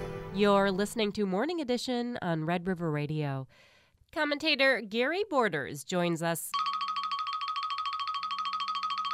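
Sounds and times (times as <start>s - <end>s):
speech: 0.4s - 6.7s
cell phone ringing: 6.5s - 9.1s.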